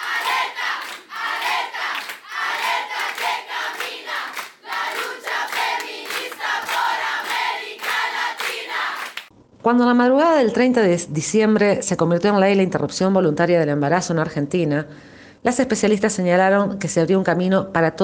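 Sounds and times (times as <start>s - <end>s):
feminist protest crowd chanting: 0.0s - 9.2s
speech: 9.6s - 18.0s.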